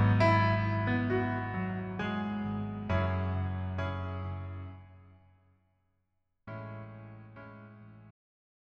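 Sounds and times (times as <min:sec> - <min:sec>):
piano version in male key: 0:00.0 - 0:05.2, 0:06.5 - 0:08.1.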